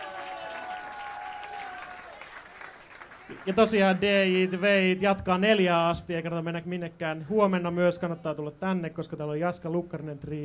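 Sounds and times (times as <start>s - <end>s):
audience applause: 0.0s - 4.7s
speech: 3.3s - 10.4s.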